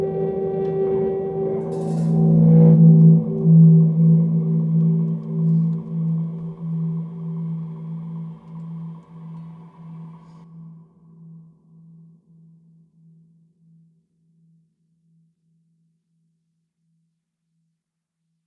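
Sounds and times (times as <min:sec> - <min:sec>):
noise improvisation: 0:00.0 - 0:10.4.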